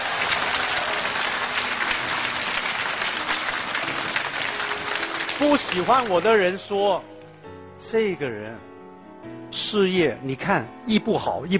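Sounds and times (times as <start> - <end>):
audience applauding: 0.0 - 6.6
speech: 5.4 - 7.1, 7.8 - 11.5.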